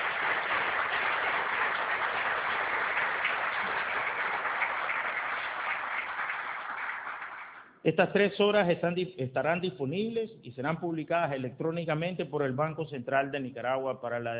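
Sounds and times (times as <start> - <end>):
audience applause: 0.0 - 7.7
speech: 7.8 - 14.3.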